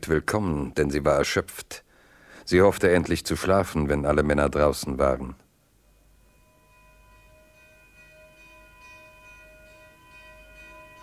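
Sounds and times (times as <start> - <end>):
speech: 0.0 - 1.8, 2.4 - 5.4
bell ringing an alarm: 6.0 - 11.0.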